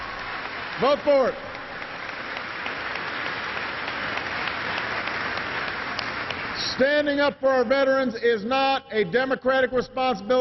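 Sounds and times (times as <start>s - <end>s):
audience applause: 0.0s - 6.8s
speech: 0.8s - 1.5s, 6.7s - 10.3s.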